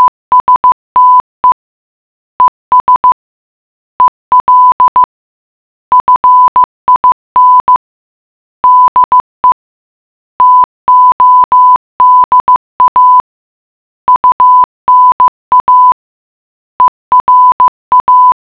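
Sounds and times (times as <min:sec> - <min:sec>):
morse code beeps: 0:00.0 - 0:01.6, 0:02.4 - 0:03.2, 0:04.0 - 0:05.1, 0:05.9 - 0:07.8, 0:08.6 - 0:09.6, 0:10.4 - 0:13.3, 0:14.1 - 0:16.0, 0:16.8 - 0:18.4.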